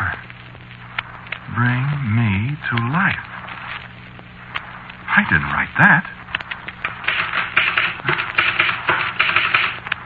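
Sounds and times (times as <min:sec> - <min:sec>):
speech: 0:01.6 - 0:03.4, 0:05.3 - 0:06.2
typewriter typing: 0:06.8 - 0:09.9.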